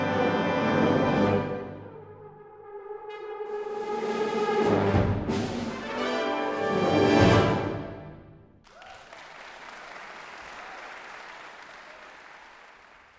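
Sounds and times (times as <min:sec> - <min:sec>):
brass band playing harmony music: 0:00.0 - 0:08.2.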